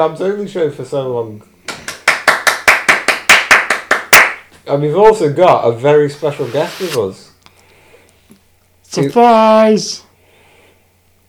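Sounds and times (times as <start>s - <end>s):
speech: 0.0s - 1.5s, 4.7s - 7.3s, 8.9s - 10.0s
hand claps: 1.7s - 4.5s.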